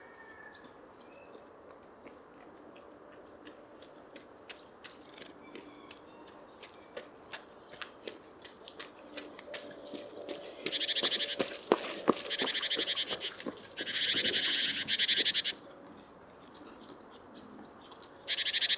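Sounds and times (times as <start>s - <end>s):
great tit Parus major calls with ticking notes and thin whistles: 10.4s - 15.6s, 17.9s - 18.7s.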